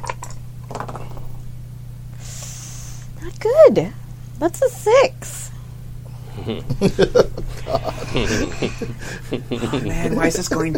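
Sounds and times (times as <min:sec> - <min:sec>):
dice rolling: 0:00.6 - 0:01.4
speech: 0:03.4 - 0:05.4, 0:06.4 - 0:10.7
laughter: 0:06.4 - 0:10.7.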